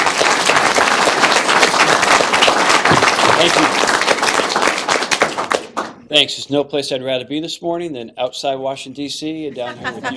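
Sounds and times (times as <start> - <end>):
audience applause: 0.0 - 6.0
speech: 3.4 - 3.8, 6.1 - 10.1
laughter: 9.5 - 10.1.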